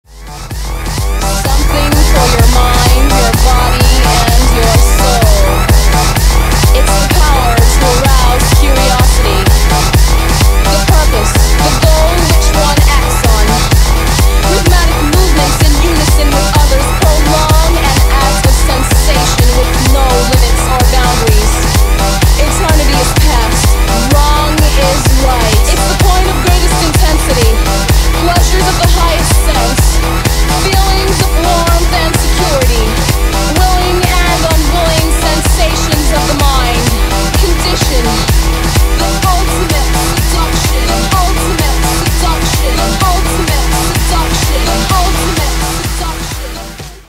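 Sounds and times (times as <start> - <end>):
techno music: 0.0 - 47.0.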